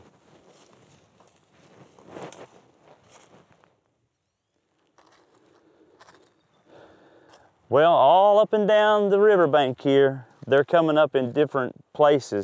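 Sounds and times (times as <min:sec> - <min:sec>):
soft footsteps walking along a riverbank: 0:00.0 - 0:03.8, 0:05.0 - 0:06.3
speech: 0:07.7 - 0:12.4.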